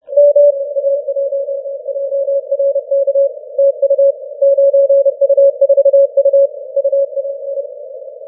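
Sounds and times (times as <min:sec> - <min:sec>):
Morse code on 40m band: 0:00.1 - 0:07.2.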